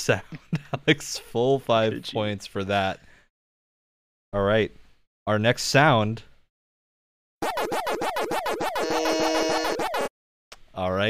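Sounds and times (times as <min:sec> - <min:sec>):
speech: 0:00.0 - 0:03.1, 0:04.3 - 0:06.3, 0:10.8 - 0:11.0
Pac-Man arcade game rapid sweeping chirps: 0:07.4 - 0:10.1.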